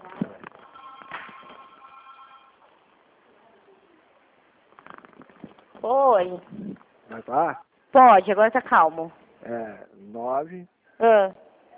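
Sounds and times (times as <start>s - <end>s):
handling noise: 0.0s - 2.5s
telephone ringing: 0.6s - 2.8s
speech: 5.8s - 11.4s.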